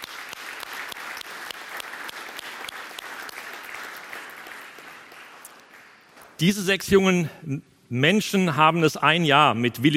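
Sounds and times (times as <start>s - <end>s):
audience clapping: 0.0s - 6.4s
speech: 6.4s - 9.9s.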